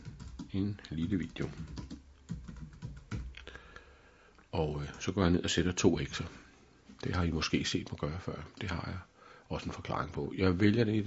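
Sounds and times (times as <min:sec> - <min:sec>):
typing into a text field on a computer keyboard: 0:00.0 - 0:03.4
speech: 0:00.6 - 0:01.8, 0:04.6 - 0:06.4, 0:07.0 - 0:11.0.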